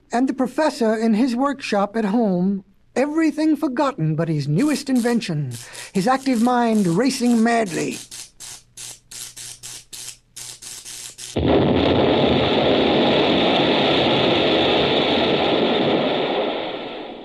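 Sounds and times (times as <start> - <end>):
speech: 0.1 - 8.2
explosion: 11.4 - 17.2.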